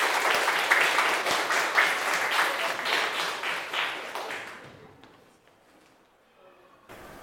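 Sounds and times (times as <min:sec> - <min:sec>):
audience applause: 0:00.0 - 0:04.9.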